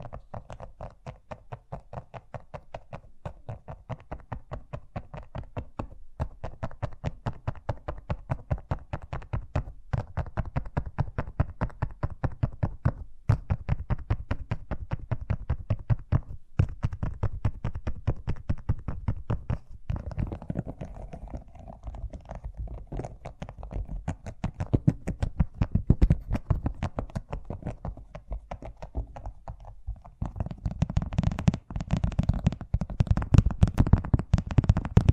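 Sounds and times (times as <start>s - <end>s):
fast tapping: 0.0s - 35.1s.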